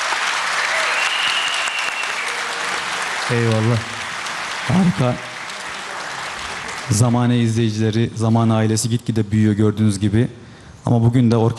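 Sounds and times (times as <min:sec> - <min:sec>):
audience applause: 0:00.0 - 0:07.6
speech: 0:03.3 - 0:04.0, 0:04.7 - 0:05.3, 0:06.9 - 0:11.5.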